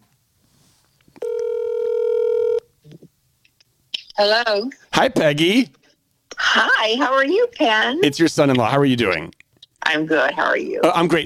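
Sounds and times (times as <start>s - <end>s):
phone dialing out: 1.2s - 2.6s
speech: 4.2s - 5.8s, 6.5s - 11.2s.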